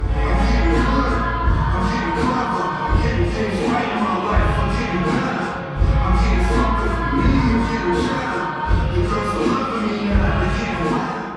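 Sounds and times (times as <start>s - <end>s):
children singing ringtone: 0.0s - 11.3s.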